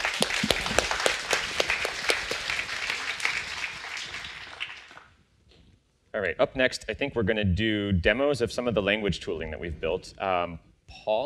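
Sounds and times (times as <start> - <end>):
applause: 0.0 - 5.2
speech: 6.2 - 11.2.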